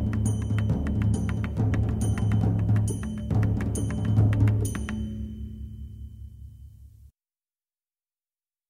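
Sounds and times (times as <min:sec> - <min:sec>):
Sinhalese drumming: 0:00.0 - 0:05.2.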